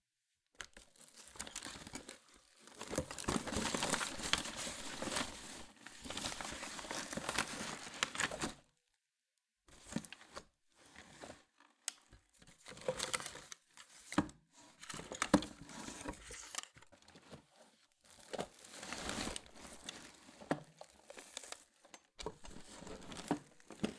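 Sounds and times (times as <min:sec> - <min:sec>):
items filling and being organised in a box: 0:00.6 - 0:08.6, 0:11.0 - 0:23.9.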